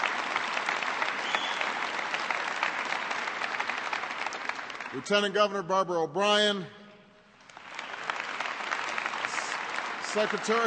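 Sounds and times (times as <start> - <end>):
audience applause: 0.0 - 5.3, 7.4 - 10.6
speech: 4.9 - 6.8, 10.1 - 10.6.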